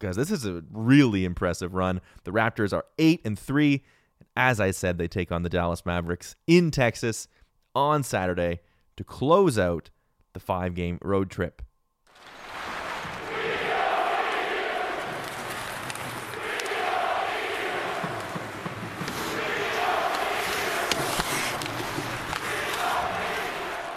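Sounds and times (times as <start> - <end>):
speech: 0.0 - 11.6
New York Islanders fans jeering at Nassau Coliseum: 12.2 - 23.9.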